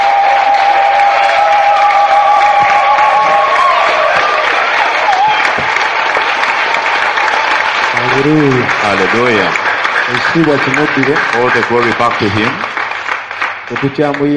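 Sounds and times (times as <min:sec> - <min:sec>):
cheers and whoops: 0:00.0 - 0:08.8
crowd clapping: 0:00.0 - 0:14.3
speech: 0:08.2 - 0:12.7, 0:13.7 - 0:14.3.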